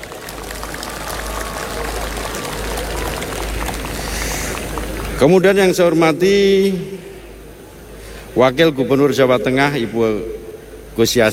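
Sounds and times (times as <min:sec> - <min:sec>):
audience applause: 0:00.0 - 0:05.5
speech: 0:05.2 - 0:07.1, 0:08.4 - 0:10.4, 0:11.0 - 0:11.3.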